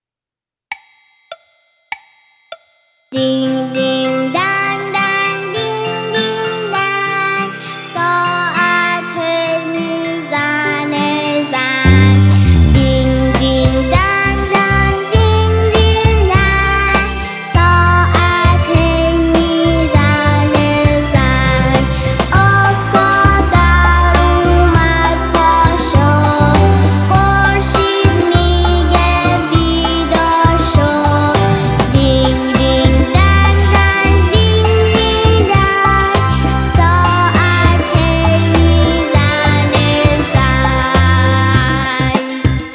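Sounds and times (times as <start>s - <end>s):
person singing a nursery rhyme in C: 3.2s - 42.6s.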